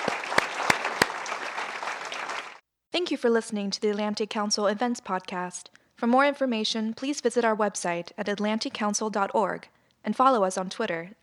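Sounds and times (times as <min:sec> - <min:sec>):
audience applause: 0:00.0 - 0:02.6
speech: 0:03.0 - 0:11.2.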